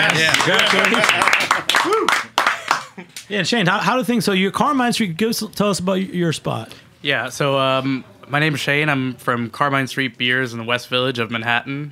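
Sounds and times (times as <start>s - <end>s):
speech: 0.0s - 2.3s, 3.0s - 11.9s
applause, hands clapping: 0.0s - 3.0s.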